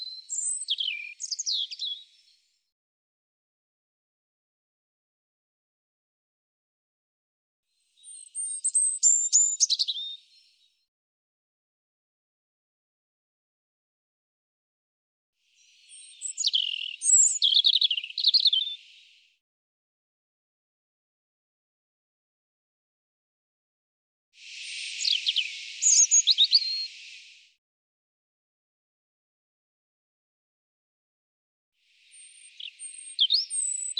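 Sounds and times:
European robin singing: 0:00.0 - 0:02.4, 0:08.0 - 0:10.5, 0:15.6 - 0:19.2, 0:24.4 - 0:27.4, 0:32.0 - 0:33.9.

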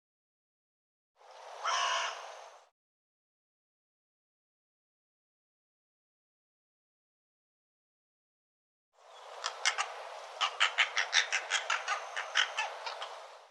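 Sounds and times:
bird giving harsh hoarse rasping caws: 0:01.6 - 0:02.6, 0:09.3 - 0:13.3.

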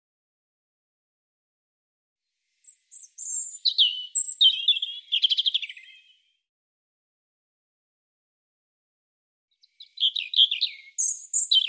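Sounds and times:
European robin song of high thin warbles and trills: 0:02.6 - 0:06.2, 0:09.6 - 0:11.6.

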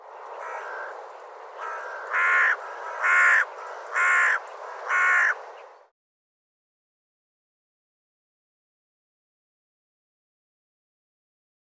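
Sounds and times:
bird calling with harsh caws: 0:00.3 - 0:01.0, 0:01.6 - 0:05.7.

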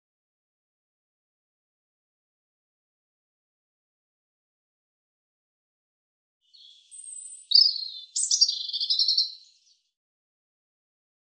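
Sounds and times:
European robin song: 0:06.4 - 0:10.0.

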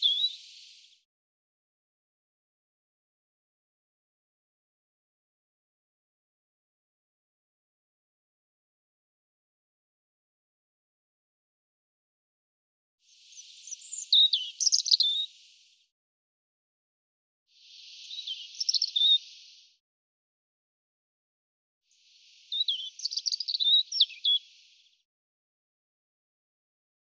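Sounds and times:
European robin singing: 0:00.0 - 0:00.8, 0:13.2 - 0:15.6, 0:17.7 - 0:19.6, 0:22.1 - 0:24.8.

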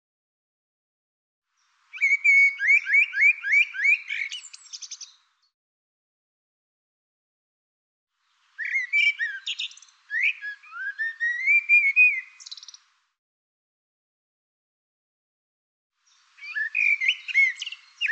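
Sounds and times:
bird singing bright phrases of varied whistles and chirps: 0:01.6 - 0:05.5, 0:08.6 - 0:12.9, 0:16.1 - 0:18.1.

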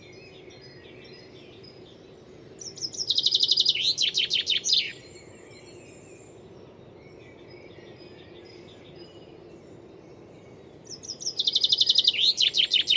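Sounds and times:
bird song with fast bright trill of high chirps and squeaks: 0:02.6 - 0:05.1, 0:10.9 - 0:12.9.

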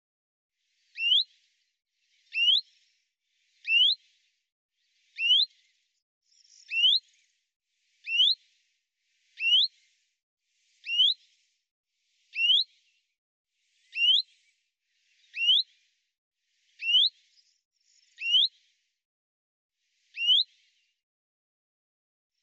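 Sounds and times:
Common chaffinch calls: 0:01.0 - 0:01.2, 0:02.3 - 0:02.6, 0:03.6 - 0:04.0, 0:05.2 - 0:05.5, 0:06.6 - 0:07.0, 0:08.0 - 0:08.4, 0:09.4 - 0:09.7, 0:10.8 - 0:11.2, 0:12.4 - 0:12.6, 0:13.9 - 0:14.2, 0:15.3 - 0:15.6, 0:16.8 - 0:17.1, 0:18.2 - 0:18.5, 0:20.1 - 0:20.4.

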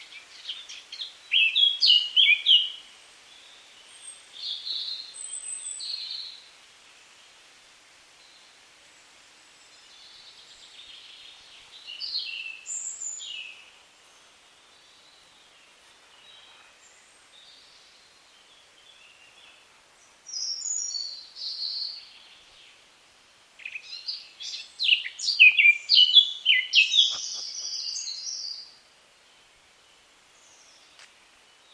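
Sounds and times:
Eurasian Blackcap song: 0:00.0 - 0:06.4, 0:10.0 - 0:22.8, 0:23.6 - 0:29.6.

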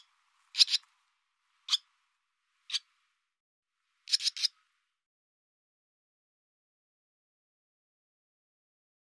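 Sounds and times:
barn swallow calls: 0:00.0 - 0:00.9, 0:01.6 - 0:01.9, 0:02.7 - 0:02.9, 0:04.0 - 0:04.6.

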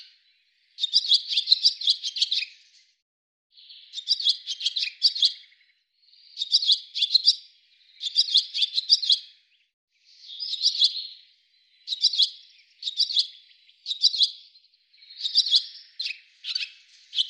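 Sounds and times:
bird twittering in rapid clicking high notes: 0:00.8 - 0:02.6, 0:03.6 - 0:09.5, 0:10.2 - 0:17.2.

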